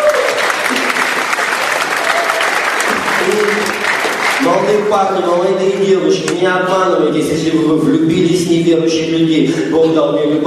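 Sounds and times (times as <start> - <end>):
crowd applauding: 0.0 - 5.7
speech: 4.4 - 10.4.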